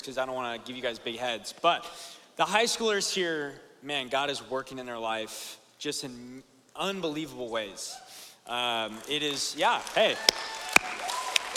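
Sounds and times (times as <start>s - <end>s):
speech: 0.0s - 11.1s
audience applauding and cheering: 9.2s - 11.5s.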